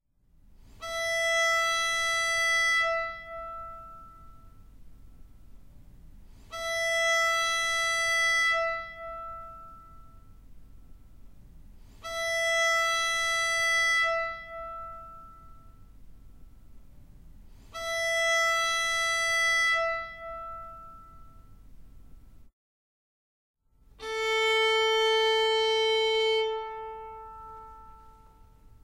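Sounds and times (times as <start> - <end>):
violin tuning notes E A D G: 0.8 - 4.8, 6.4 - 10.5, 12.0 - 15.9, 17.7 - 21.5, 24.0 - 28.8.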